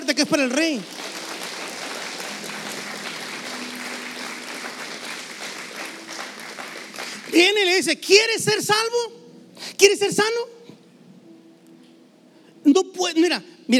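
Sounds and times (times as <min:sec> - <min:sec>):
crowd clapping: 0:00.0 - 0:07.9
speech: 0:00.2 - 0:01.0, 0:07.4 - 0:09.2, 0:09.8 - 0:10.6, 0:12.7 - 0:13.7.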